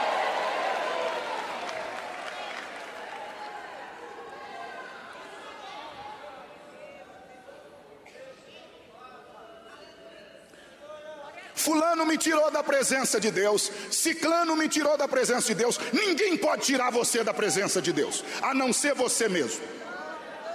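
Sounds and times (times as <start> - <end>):
audience shouting glory to God: 0.0 - 7.1, 19.4 - 20.5
speech: 11.6 - 20.0.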